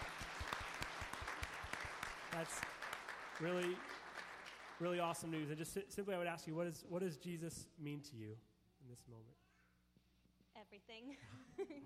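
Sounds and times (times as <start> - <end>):
audience clapping: 0.0 - 5.8
speech: 2.4 - 2.8, 3.4 - 4.0, 4.8 - 9.4, 10.6 - 11.8.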